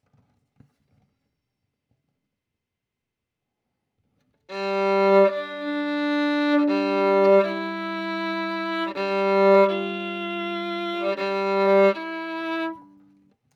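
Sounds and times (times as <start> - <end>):
violin: 4.5 - 13.2.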